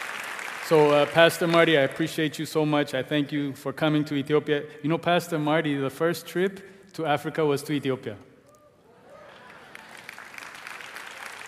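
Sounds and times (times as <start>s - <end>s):
audience clapping: 0.0s - 1.9s, 9.1s - 11.4s
speech: 0.7s - 8.3s.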